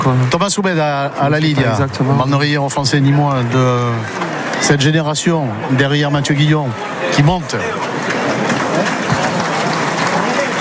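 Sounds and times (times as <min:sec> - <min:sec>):
audience applause in bullring arena: 0:00.0 - 0:04.7, 0:06.8 - 0:10.5
speech: 0:00.0 - 0:09.2.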